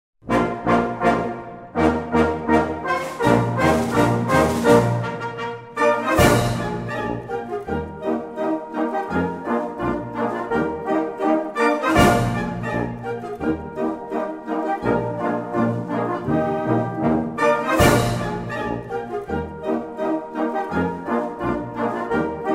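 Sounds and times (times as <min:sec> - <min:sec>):
polka music: 0:00.2 - 0:22.5.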